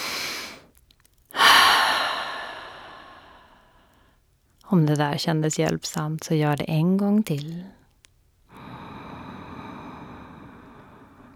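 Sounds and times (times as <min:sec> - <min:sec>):
breath in through the nose: 0:01.3 - 0:04.2, 0:08.5 - 0:11.3
long loud sigh out through the mouth: 0:01.4 - 0:03.6
speech: 0:04.7 - 0:07.8.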